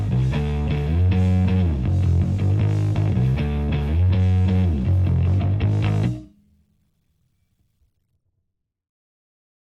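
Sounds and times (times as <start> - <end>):
rhythm: 0.0 - 6.4.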